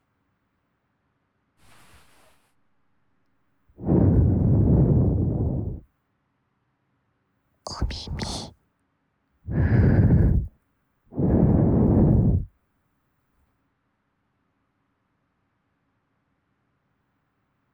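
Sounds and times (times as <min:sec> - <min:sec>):
blowing into ears: 0:03.8 - 0:05.8, 0:07.7 - 0:08.5, 0:09.5 - 0:10.5, 0:11.1 - 0:12.5.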